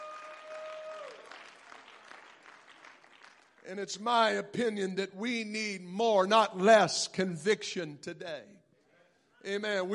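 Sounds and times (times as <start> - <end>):
audience clapping hands: 0.0 - 4.0
speech: 3.6 - 8.6, 9.4 - 9.9.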